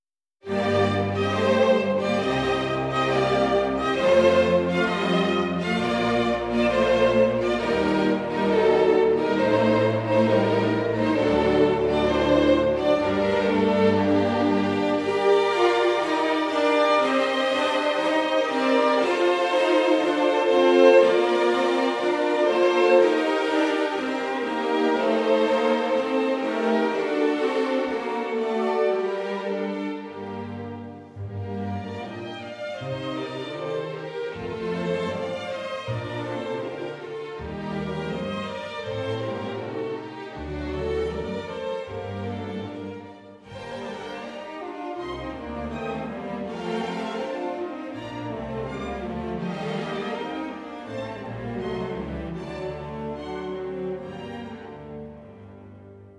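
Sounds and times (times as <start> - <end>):
string orchestra serenade: 0.4 - 56.1.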